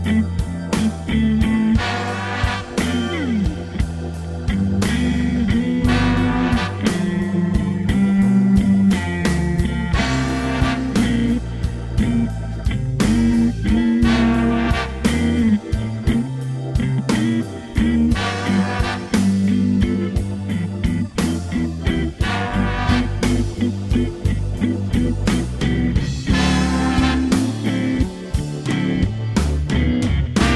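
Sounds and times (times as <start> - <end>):
slow blues music in G: 0.0 - 30.5.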